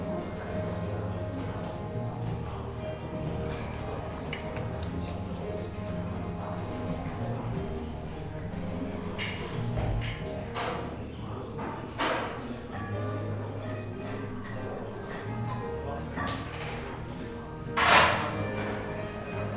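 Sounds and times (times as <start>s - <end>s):
murmur of voices in a café: 0.0s - 19.5s
cups or dishes clinking: 3.2s - 5.3s, 9.0s - 12.5s, 13.6s - 17.0s, 17.7s - 19.5s.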